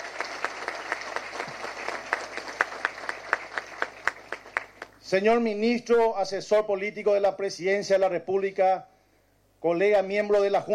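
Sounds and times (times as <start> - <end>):
audience applause: 0.0 - 5.0
speech: 5.1 - 8.9, 9.6 - 10.7.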